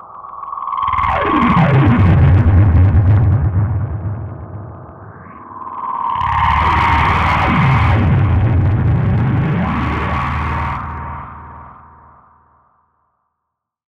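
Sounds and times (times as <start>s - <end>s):
bent sound with ghost delay: 1.0s - 12.1s.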